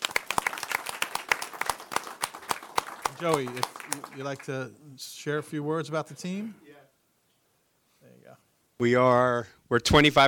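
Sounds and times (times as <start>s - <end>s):
round of applause: 0.0s - 4.6s
speech: 3.2s - 6.7s, 8.3s - 10.2s.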